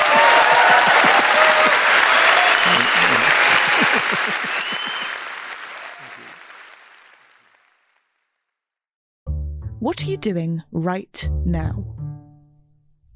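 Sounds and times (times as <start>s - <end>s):
audience applause: 0.0s - 8.1s
speech: 10.1s - 12.0s
laughter: 11.2s - 13.0s.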